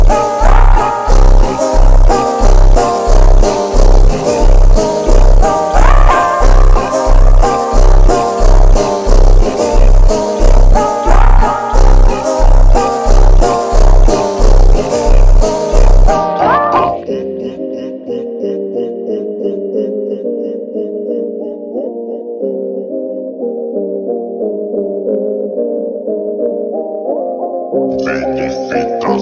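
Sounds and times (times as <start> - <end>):
slowed montagem funk music: 0.0 - 17.2, 23.8 - 29.1.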